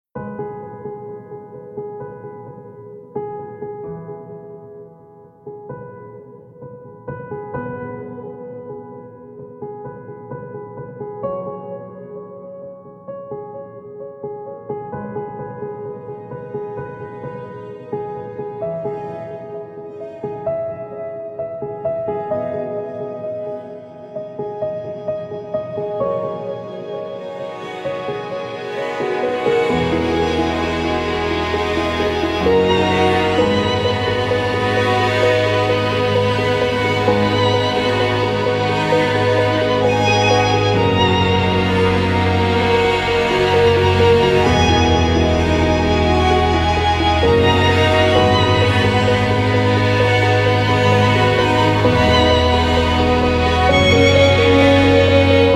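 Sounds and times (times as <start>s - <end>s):
instrumental music: 0.2s - 55.5s.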